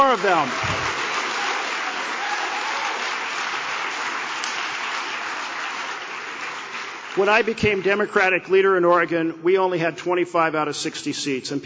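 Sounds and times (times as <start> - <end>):
speech: 0.0 - 0.9, 7.2 - 11.6
audience applause: 0.0 - 8.0.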